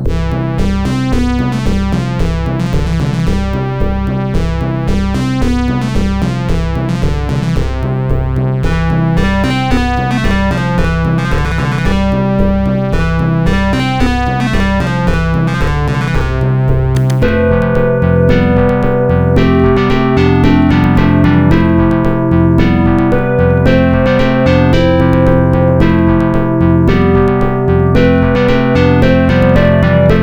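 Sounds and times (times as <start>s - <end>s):
arcade ranking march music: 0.1s - 30.2s.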